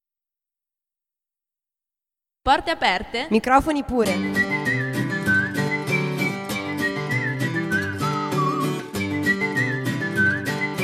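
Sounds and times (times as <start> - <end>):
speech: 2.4 - 4.6
podcast jingle with whistling: 4.2 - 10.8.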